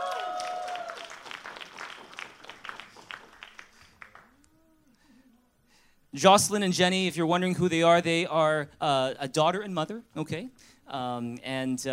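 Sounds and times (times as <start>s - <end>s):
audience applause welcoming a daughter and mother onto a stage: 0.0s - 4.4s
speech: 6.2s - 11.9s.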